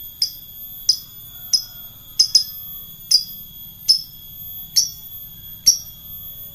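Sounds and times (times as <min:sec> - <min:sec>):
lovebird singing in the ngekek style: 0:00.2 - 0:03.3, 0:03.9 - 0:04.1, 0:04.7 - 0:06.5.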